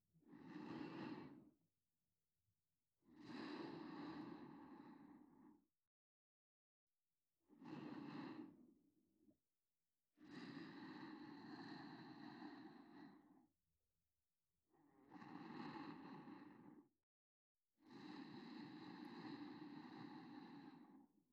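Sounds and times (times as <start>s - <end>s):
reversed breathing of a sleeping person: 0.3s - 1.5s, 3.6s - 5.6s, 7.5s - 8.6s, 10.4s - 13.4s, 15.1s - 16.9s, 18.1s - 21.1s.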